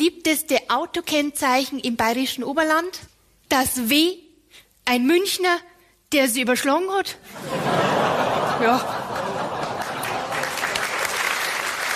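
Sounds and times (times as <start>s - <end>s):
speech: 0.0s - 4.2s, 4.8s - 9.0s
laughter: 7.3s - 11.1s
woman clapping: 9.6s - 11.9s.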